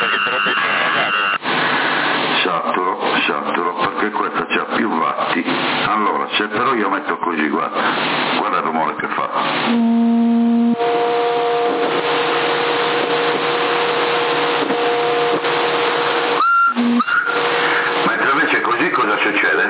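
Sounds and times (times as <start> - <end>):
people talking: 0.0 - 1.1, 2.3 - 9.5, 17.0 - 19.6
ship horn as the ship departs: 9.6 - 18.1.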